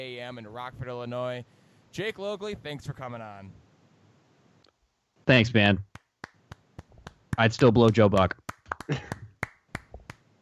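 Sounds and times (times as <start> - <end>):
speech: 0.0 - 3.6, 5.3 - 5.9, 7.4 - 9.2
hand claps: 5.9 - 10.3.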